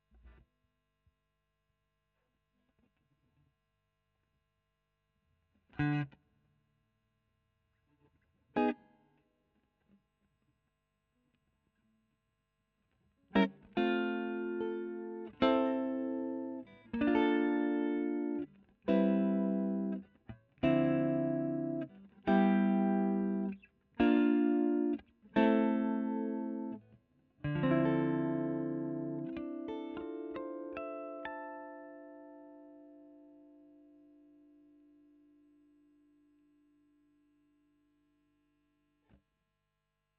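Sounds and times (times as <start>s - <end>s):
electric guitar: 13.3s - 36.7s.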